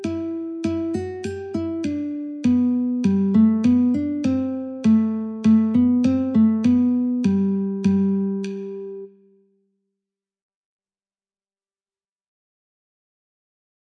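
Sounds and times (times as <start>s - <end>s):
metronome ticking at 50: 0.0s - 9.1s
polka guitar: 0.0s - 9.1s.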